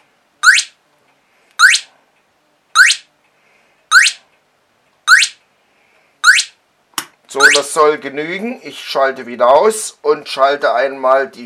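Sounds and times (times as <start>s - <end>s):
electronic device chirping like a sparrow: 0.4s - 0.8s, 1.6s - 1.9s, 2.8s - 3.1s, 3.9s - 4.2s, 5.1s - 5.4s, 6.2s - 6.6s, 7.4s - 7.7s
speech: 7.3s - 11.4s.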